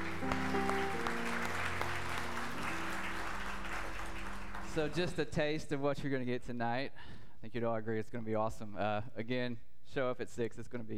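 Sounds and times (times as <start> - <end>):
audience clapping: 0.0 - 5.6
sustained low instrumental tones: 0.0 - 5.6
speech: 4.8 - 10.9.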